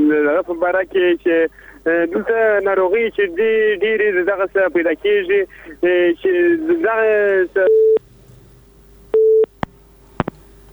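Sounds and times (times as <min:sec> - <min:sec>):
faint hum: 0:00.0 - 0:10.7
speech: 0:00.4 - 0:08.0
telephone tone after a call-in caller's line is cut off: 0:09.2 - 0:09.5.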